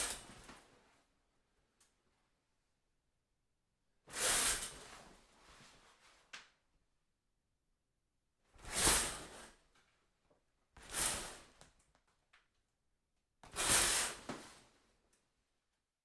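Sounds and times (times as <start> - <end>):
shower curtain being pulled: 0.0 - 0.7, 4.1 - 6.3, 8.6 - 9.7, 10.8 - 11.8, 13.5 - 14.9.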